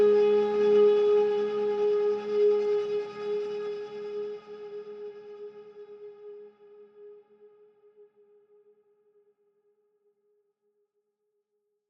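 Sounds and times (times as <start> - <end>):
warm flute: 0.0 - 7.2.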